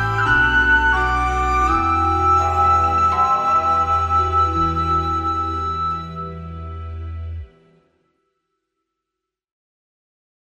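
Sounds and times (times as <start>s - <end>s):
dizi flute: 0.0s - 7.8s.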